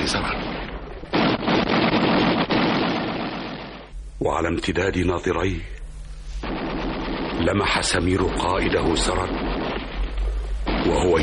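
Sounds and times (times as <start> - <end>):
rapid gunfire in a radio drama: 0.0 - 3.9, 6.4 - 11.2
speech: 4.4 - 5.8, 7.4 - 9.4, 10.8 - 11.2.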